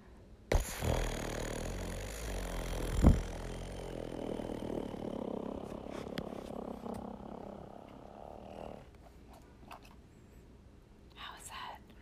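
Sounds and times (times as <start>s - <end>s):
voice imitating a motorboat engine with fluttering lips: 0.5s - 8.8s.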